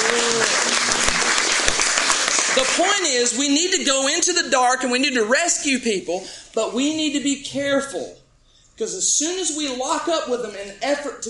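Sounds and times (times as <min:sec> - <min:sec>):
audience applause: 0:00.0 - 0:03.4
speech: 0:02.8 - 0:08.2, 0:08.8 - 0:11.2.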